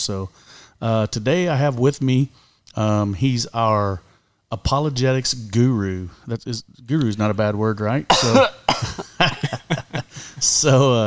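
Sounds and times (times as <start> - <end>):
speech: 0.0 - 9.8, 10.4 - 11.0
person coughing into a microphone: 8.1 - 9.8
laughter: 8.8 - 10.6.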